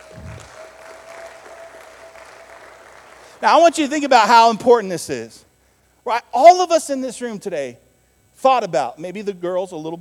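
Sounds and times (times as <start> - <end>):
audience applause: 0.0 - 3.4
speech: 3.4 - 5.4, 6.0 - 7.8, 8.4 - 9.9.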